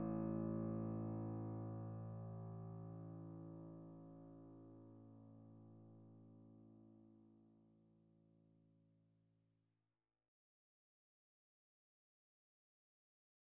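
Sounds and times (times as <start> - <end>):
Korg digital piano notes: 0.0 - 4.2.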